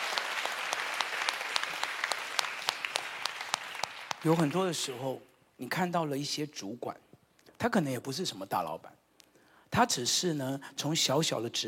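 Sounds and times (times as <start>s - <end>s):
audience clapping: 0.0s - 5.0s
speech: 4.2s - 9.0s, 9.7s - 11.6s.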